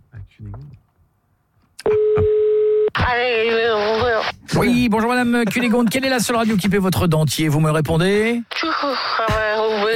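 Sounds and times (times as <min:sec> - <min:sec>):
speech: 0:00.4 - 0:00.9, 0:03.1 - 0:04.0, 0:04.6 - 0:09.9
telephone line tone as a host phones a listener: 0:01.9 - 0:02.9.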